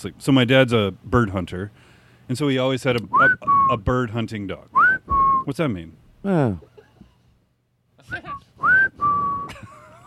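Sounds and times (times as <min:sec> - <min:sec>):
speech: 0:00.0 - 0:04.8, 0:05.5 - 0:06.7
person whistling to call a dog: 0:04.8 - 0:05.5, 0:08.1 - 0:09.6.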